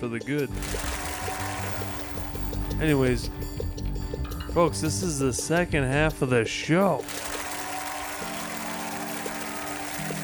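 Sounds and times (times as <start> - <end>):
speech: 0.0 - 1.0, 2.8 - 3.6, 4.5 - 7.2
clap track applause effect: 0.5 - 3.5, 7.0 - 10.2.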